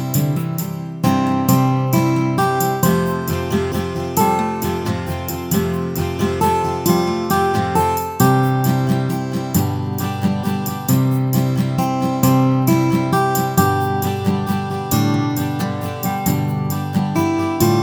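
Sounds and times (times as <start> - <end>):
ukulele: 0.2 - 17.8.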